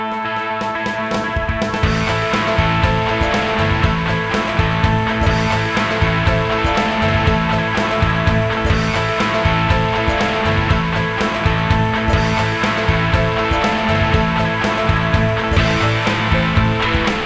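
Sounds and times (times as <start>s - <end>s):
soft rock music: 0.1s - 17.2s.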